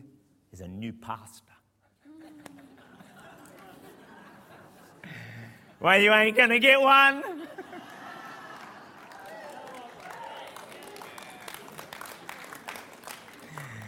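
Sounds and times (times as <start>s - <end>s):
speech: 0.6s - 1.6s, 5.8s - 7.4s
laughter: 2.0s - 5.8s, 6.9s - 12.4s
small audience clapping: 2.3s - 4.3s, 7.6s - 13.8s.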